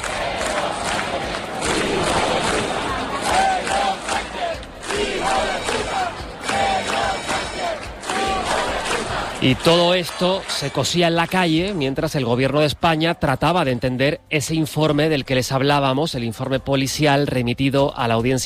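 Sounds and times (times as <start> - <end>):
protest crowd shouting and chanting insults: 0.0 - 13.7
speech: 9.4 - 18.4.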